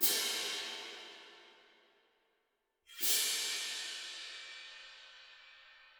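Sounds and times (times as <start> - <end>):
cymbals: 0.0 - 1.6, 2.9 - 5.9.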